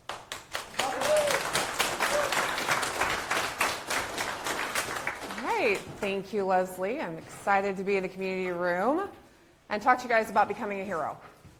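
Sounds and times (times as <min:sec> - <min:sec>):
audience applause welcoming speaker: 0:00.0 - 0:05.8
speech: 0:05.7 - 0:11.3.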